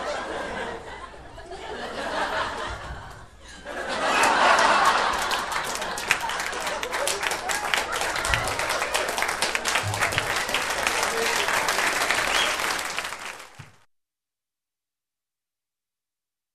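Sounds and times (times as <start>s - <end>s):
group of people laughing hilariously: 0.0s - 12.5s.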